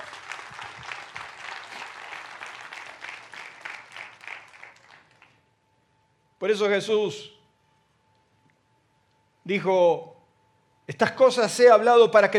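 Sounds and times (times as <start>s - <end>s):
audience applauding: 0.0s - 5.4s
speech: 6.4s - 7.4s, 9.5s - 10.1s, 10.9s - 12.3s.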